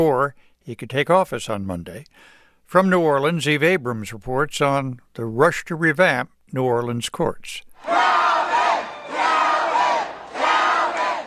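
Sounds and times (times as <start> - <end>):
speech: 0.0 - 8.2
crowd cheering and shouting on election night: 7.8 - 11.2.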